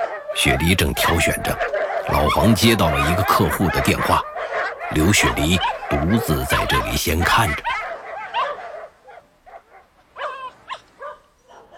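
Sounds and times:
German shepherd barking and yipping: 0.0s - 11.7s
speech: 0.4s - 4.3s, 4.9s - 7.8s.

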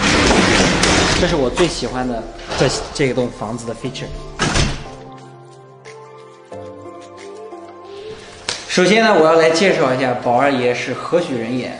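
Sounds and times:
house door shutting: 0.0s - 5.1s
soft music: 0.2s - 11.7s
speech: 1.2s - 4.3s, 8.8s - 11.7s.

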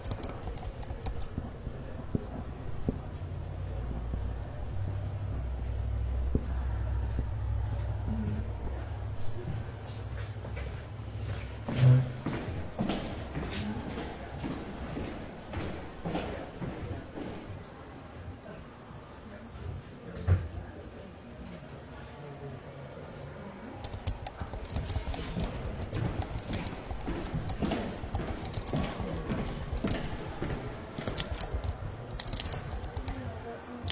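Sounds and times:
typing, writing and page-turning in a public library: 0.0s - 1.4s, 23.8s - 33.2s
murmured voices: 0.0s - 33.9s.

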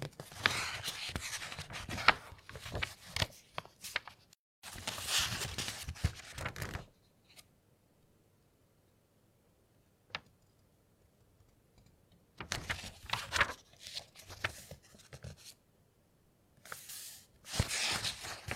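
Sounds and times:
book pages turning: 0.0s - 7.4s, 12.4s - 15.6s, 16.6s - 18.5s.

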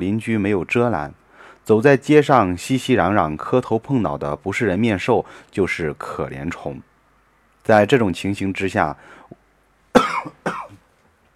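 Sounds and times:
speech: 0.0s - 6.9s, 7.6s - 9.2s
person coughing: 10.0s - 10.8s.

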